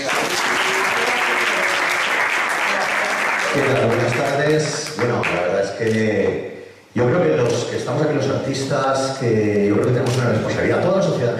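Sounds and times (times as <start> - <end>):
audience applause: 0.0 - 5.4
speech: 3.6 - 5.2, 5.8 - 11.3.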